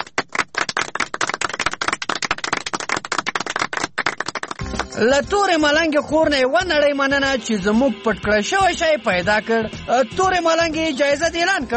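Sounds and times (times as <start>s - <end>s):
audience clapping for a quiz contestant: 0.0s - 5.0s
speech: 5.0s - 11.7s.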